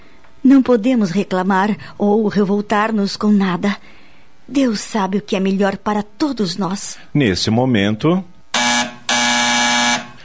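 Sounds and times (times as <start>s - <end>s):
speech: 0.5s - 8.3s
nurse call bell ringing: 8.6s - 10.2s.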